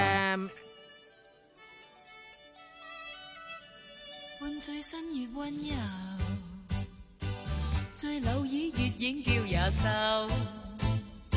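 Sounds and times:
speech: 4.4s - 6.4s, 8.0s - 10.6s
Cantonese pop song recording: 4.4s - 11.3s.

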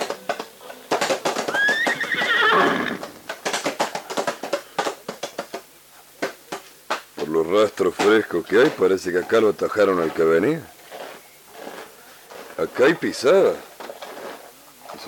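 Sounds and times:
ridden horse hoofbeats: 0.0s - 15.0s
ridden horse whinnying: 1.2s - 3.4s
speech: 7.5s - 10.7s, 12.6s - 13.7s.

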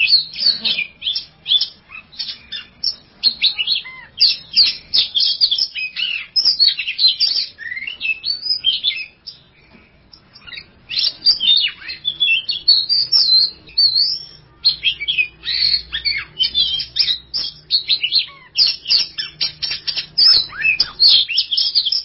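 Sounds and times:
Oriental magpie-robin song: 0.0s - 22.0s.

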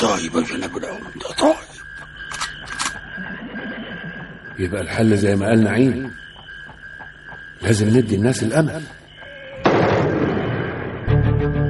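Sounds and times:
speech: 0.0s - 1.8s, 4.6s - 6.2s, 7.6s - 9.0s
rifle shot in a TV drama: 9.6s - 11.1s.

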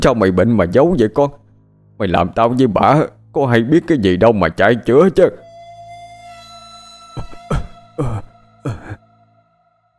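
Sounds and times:
speech: 0.0s - 1.4s, 2.0s - 5.4s, 8.0s - 9.0s
man coughing: 7.2s - 9.0s.

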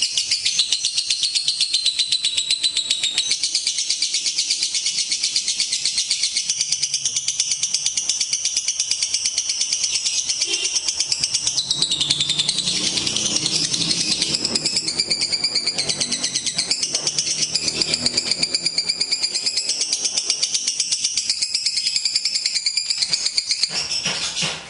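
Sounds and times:
lovebird chattering song: 0.0s - 24.6s.

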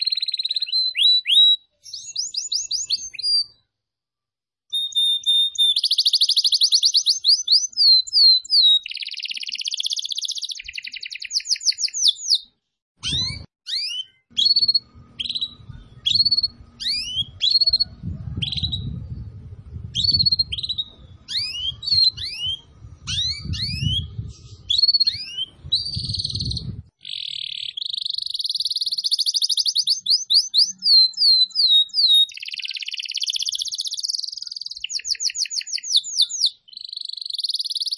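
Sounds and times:
Atlantic canary singing: 0.0s - 3.6s, 4.7s - 37.9s
steady low rumbling noise: 14.4s - 26.9s.

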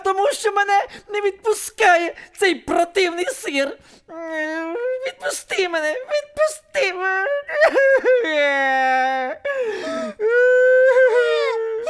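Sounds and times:
speech: 0.2s - 11.4s
person wailing and crying: 4.1s - 11.8s.

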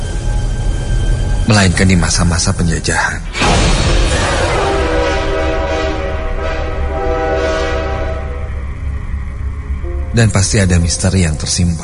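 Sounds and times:
rumble of a train passing on a colonial-era railway line by a house in Bandung: 0.0s - 3.2s, 4.0s - 11.8s
speech: 1.5s - 3.7s, 10.2s - 11.8s
train horn blaring on a colonial-era railway line in Bandung, Indonesia: 4.2s - 10.1s.

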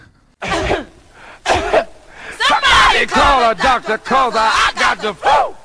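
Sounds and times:
man coughing on a record: 0.4s - 2.0s
speech: 3.0s - 5.5s.

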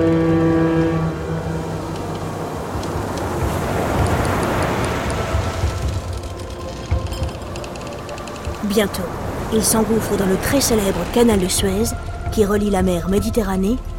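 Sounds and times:
low horn-like tone: 0.0s - 4.6s
ocean liner Victoria engine rumble at sea: 0.0s - 13.9s
rushing water around ocean liner Victoria at sea: 0.0s - 13.9s
speech: 8.8s - 13.9s.

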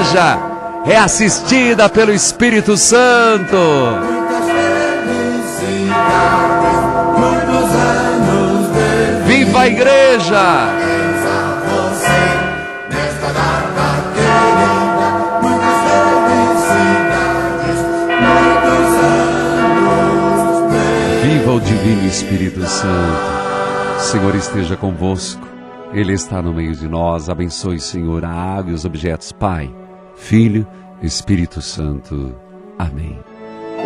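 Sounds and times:
church bells ringing: 0.0s - 26.2s
speech: 0.1s - 5.2s, 9.6s - 11.0s, 21.9s - 23.4s, 24.0s - 33.8s.

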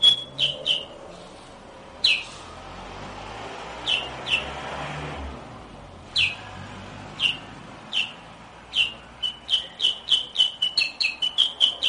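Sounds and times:
sooty-headed bulbul chirping rapidly: 0.0s - 1.0s, 2.0s - 2.4s, 3.8s - 4.5s, 6.1s - 6.5s, 7.2s - 11.8s.

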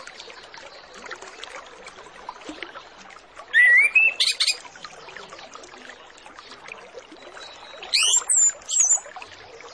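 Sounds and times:
orange-headed thrush song: 3.5s - 4.6s, 7.2s - 9.1s.

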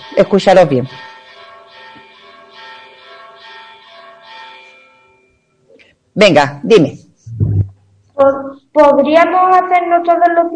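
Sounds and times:
church bells ringing: 0.0s - 5.7s
speech: 0.1s - 1.1s, 6.2s - 7.5s, 8.2s - 10.5s.

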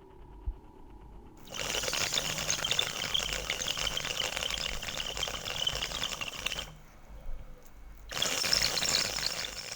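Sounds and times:
bamboo water pipe gurgling and bubbling while smoked: 1.4s - 7.0s, 8.0s - 9.7s.

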